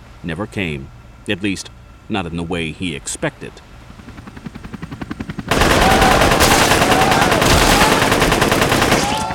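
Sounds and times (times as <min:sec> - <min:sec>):
speech: 0:00.2 - 0:04.2
automatic gunfire: 0:05.5 - 0:09.3.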